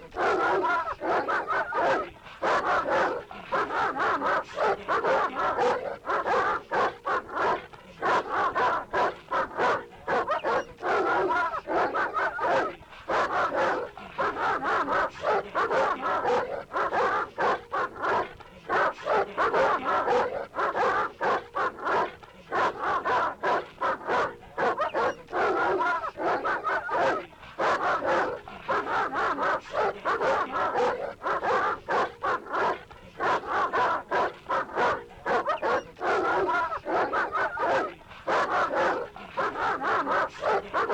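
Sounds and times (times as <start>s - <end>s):
laughter: 0.0s - 40.9s
dogs barking and whining: 8.5s - 12.3s, 18.8s - 40.9s.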